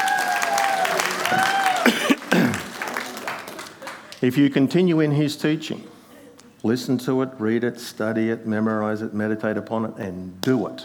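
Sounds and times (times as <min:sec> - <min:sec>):
audience clapping: 0:00.0 - 0:04.8
laughter: 0:00.0 - 0:07.7
speech: 0:04.2 - 0:05.9, 0:06.6 - 0:10.8.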